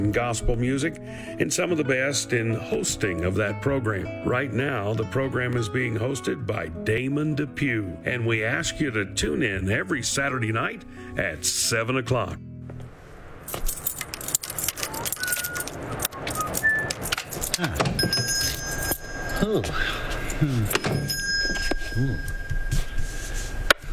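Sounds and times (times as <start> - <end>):
speech: 0.0 - 12.5, 13.5 - 13.8, 19.4 - 21.0
small shop bell above the door ringing: 14.4 - 23.8.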